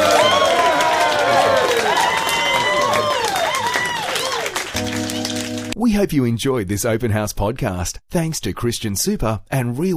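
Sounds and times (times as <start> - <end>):
audience applauding: 0.0 - 5.8
speech: 5.9 - 9.9.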